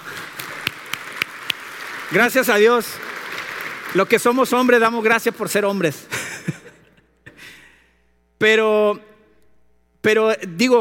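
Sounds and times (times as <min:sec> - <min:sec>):
single person clapping: 0:00.0 - 0:04.2
speech: 0:02.1 - 0:03.1, 0:03.9 - 0:06.6, 0:08.4 - 0:09.0, 0:10.0 - 0:10.7
laughter: 0:06.1 - 0:07.1.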